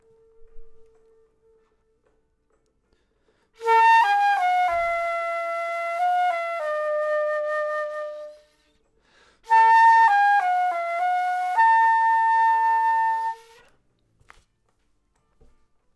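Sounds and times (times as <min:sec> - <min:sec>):
flute: 0:00.0 - 0:02.7, 0:03.6 - 0:08.8, 0:09.4 - 0:13.8.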